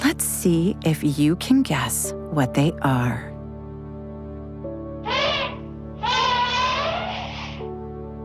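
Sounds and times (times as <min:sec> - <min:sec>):
speech: 0:00.1 - 0:03.3
elephant trumpeting: 0:05.0 - 0:07.7.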